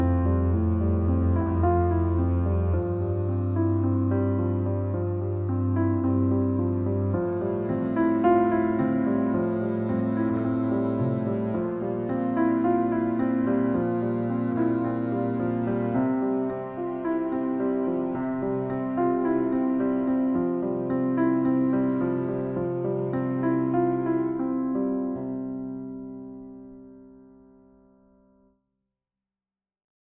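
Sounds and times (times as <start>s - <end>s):
double bass: 0.0s - 16.0s
gently moving piano: 0.0s - 27.0s.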